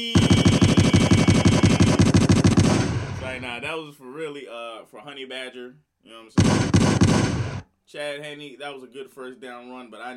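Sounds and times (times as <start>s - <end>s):
rapid-fire gunshot sound effects: 0.0s - 3.7s, 6.4s - 7.7s
speech: 3.5s - 10.1s.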